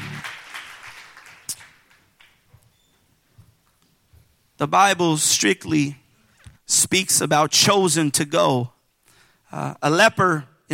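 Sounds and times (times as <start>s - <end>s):
audience clapping hands: 0.0s - 2.5s
speech: 4.6s - 6.0s, 6.7s - 8.8s, 9.5s - 10.7s.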